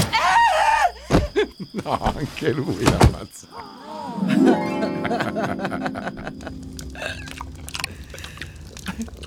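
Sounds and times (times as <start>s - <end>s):
laughter: 0.1s - 2.7s, 3.9s - 7.5s
speech: 1.9s - 7.5s
chewing and biting into meat from a leg: 7.2s - 9.2s.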